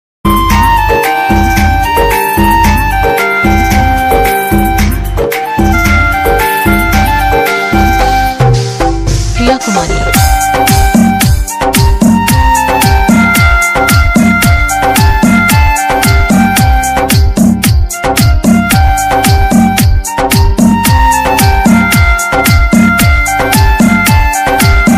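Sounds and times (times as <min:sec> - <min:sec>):
romantic DJ remix mobile ringtone: 0:00.2 - 0:24.9.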